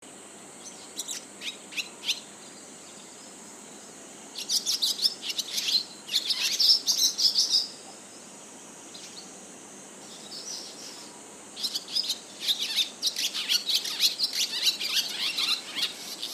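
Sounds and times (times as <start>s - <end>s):
faint steady high hiss: 0.0s - 16.3s
barn swallow twittering: 0.6s - 2.6s, 4.4s - 7.8s, 10.1s - 16.3s.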